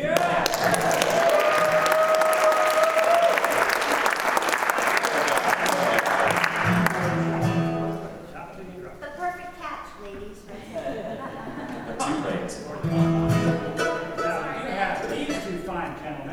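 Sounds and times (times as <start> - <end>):
laughter: 0.0 - 7.4, 10.5 - 16.3
audience applause: 0.0 - 7.9.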